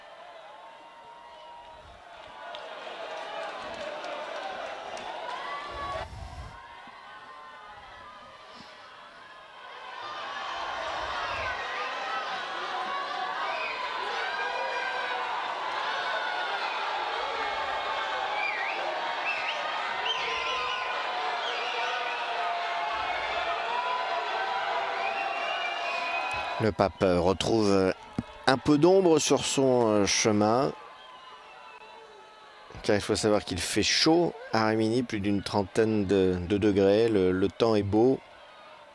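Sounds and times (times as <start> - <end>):
scattered cheers: 0.0 - 38.9
crowd roaring and chattering: 2.0 - 38.9
speech: 26.6 - 30.8, 32.8 - 38.3.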